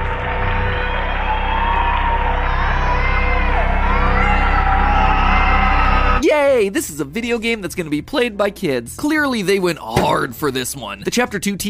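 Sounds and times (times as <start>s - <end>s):
audience applause: 0.0s - 6.2s
speech: 6.6s - 11.6s.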